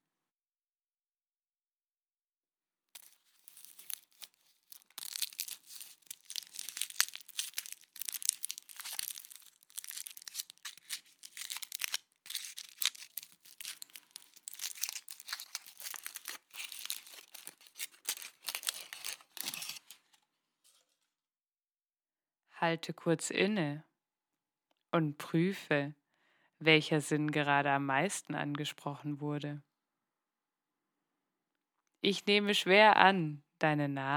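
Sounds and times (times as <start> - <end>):
crinkly packaging crackling and rustling while unwrapped: 3.0 - 20.2
speech: 22.6 - 23.9, 24.9 - 26.0, 26.6 - 29.7, 32.0 - 34.1.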